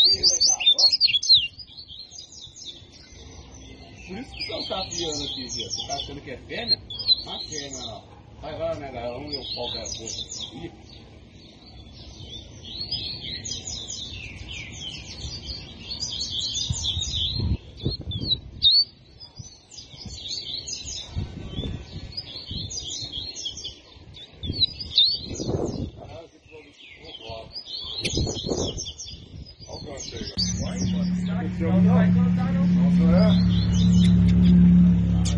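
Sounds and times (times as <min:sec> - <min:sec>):
double-collared seedeater twittering song: 0:00.0 - 0:08.1, 0:09.1 - 0:35.3
hum: 0:30.4 - 0:35.3
low thumps: 0:30.4 - 0:35.3.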